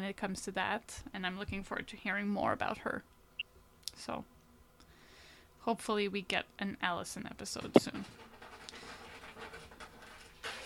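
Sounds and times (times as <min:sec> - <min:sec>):
speech: 0:00.1 - 0:03.2, 0:04.0 - 0:04.4, 0:05.6 - 0:08.3
cats scratching at the door: 0:08.0 - 0:10.6.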